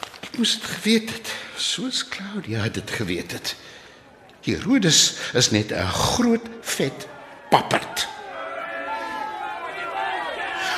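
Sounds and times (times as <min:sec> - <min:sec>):
speech: 0:00.4 - 0:03.7, 0:04.4 - 0:08.1
rowdy crowd clamouring and shouting outside: 0:06.2 - 0:10.7.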